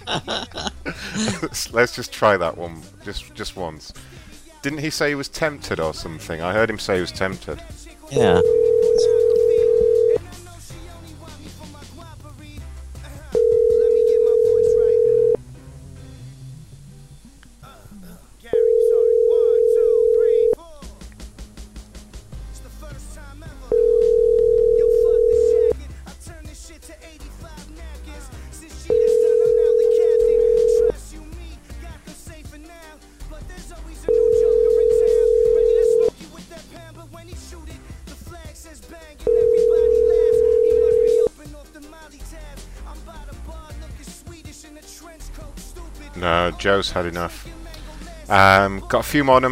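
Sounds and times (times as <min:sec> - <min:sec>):
laughter: 0:00.0 - 0:01.8
speech: 0:00.0 - 0:09.1, 0:46.6 - 0:47.5, 0:48.3 - 0:49.5
telephone ringing tone on the line during a prank phone call: 0:08.2 - 0:10.2, 0:13.3 - 0:15.4, 0:18.5 - 0:20.6, 0:23.7 - 0:25.8, 0:28.9 - 0:30.9, 0:34.1 - 0:36.1, 0:39.3 - 0:41.3.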